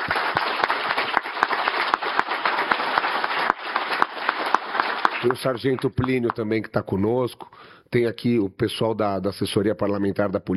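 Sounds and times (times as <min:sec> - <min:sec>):
audience applause: 0:00.0 - 0:06.4
speech: 0:05.2 - 0:10.5.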